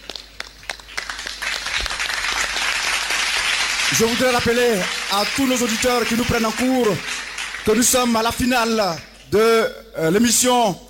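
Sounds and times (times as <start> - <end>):
audience applauding three parishes at a faith contest final: 0.0 - 8.7
speech: 3.9 - 10.8.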